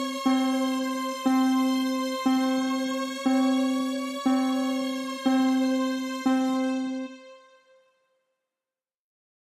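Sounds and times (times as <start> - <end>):
atmospheric synths: 0.0 - 7.6.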